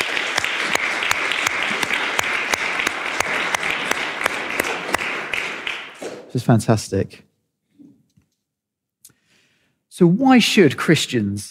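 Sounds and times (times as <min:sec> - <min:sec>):
audience applause: 0:00.0 - 0:06.4
speech: 0:06.3 - 0:07.3, 0:10.0 - 0:11.4.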